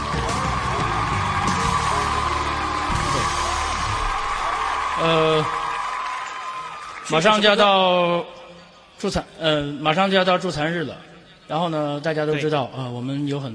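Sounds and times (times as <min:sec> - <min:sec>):
crowd clapping and cheering: 0:00.0 - 0:07.8
speech: 0:05.0 - 0:05.6, 0:07.1 - 0:08.4, 0:09.0 - 0:13.5.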